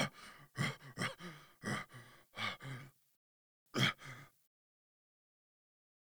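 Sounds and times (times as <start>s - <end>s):
breathing: 0.1s - 2.9s, 3.8s - 4.3s.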